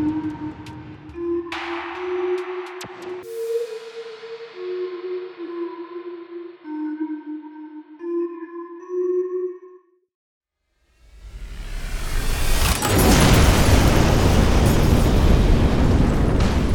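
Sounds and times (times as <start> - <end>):
steady harmonic tone: 0.0 - 9.3
huge explosion blasting a hangar: 11.2 - 16.7.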